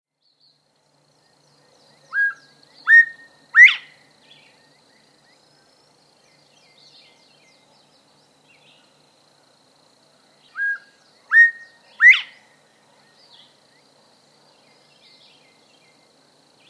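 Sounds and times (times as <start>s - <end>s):
northern bobwhite whistles: 10.6s - 12.4s.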